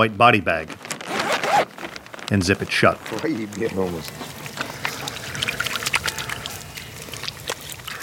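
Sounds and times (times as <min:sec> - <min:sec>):
speech: 0:00.0 - 0:00.9, 0:02.3 - 0:04.4
water poured onto hands for washing: 0:03.5 - 0:08.0.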